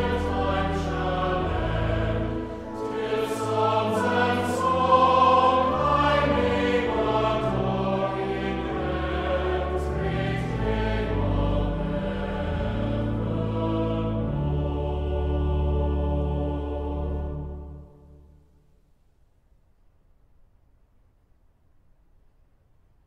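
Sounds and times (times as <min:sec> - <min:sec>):
choir singing: 0:00.0 - 0:18.4.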